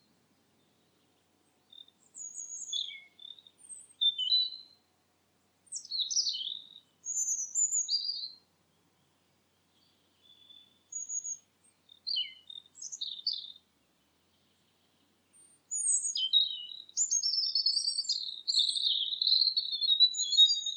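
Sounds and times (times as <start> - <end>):
bird calls with high thin whistles and short chirps: 1.7 - 4.7, 5.7 - 8.4, 10.3 - 11.4, 12.0 - 13.6, 15.7 - 20.7.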